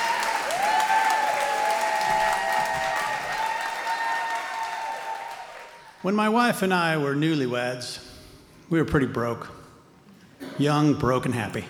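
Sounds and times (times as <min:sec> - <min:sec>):
audience cheering and applauding: 0:00.0 - 0:06.0
speech: 0:06.0 - 0:08.1, 0:08.7 - 0:09.6, 0:10.6 - 0:11.6.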